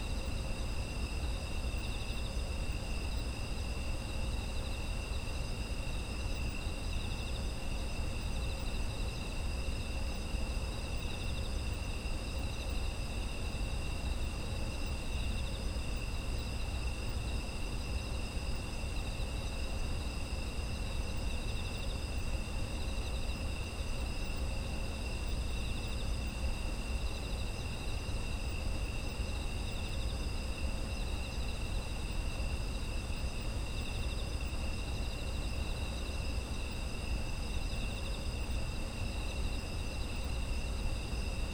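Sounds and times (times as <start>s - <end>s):
autumn insects chirping: 0.0s - 41.5s.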